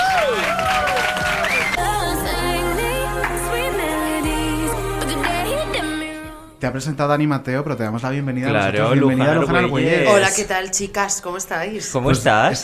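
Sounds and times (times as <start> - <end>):
audience applause and cheering: 0.0 - 5.5
loud music with deep bass and wavering melody: 0.0 - 6.6
speech: 6.6 - 12.6.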